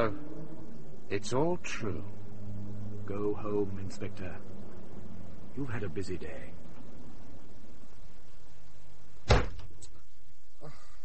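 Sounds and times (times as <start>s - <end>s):
speech: 0.0s - 0.2s, 1.1s - 2.2s, 3.1s - 4.5s, 5.6s - 6.6s
door being forced open and splintered: 9.2s - 9.8s.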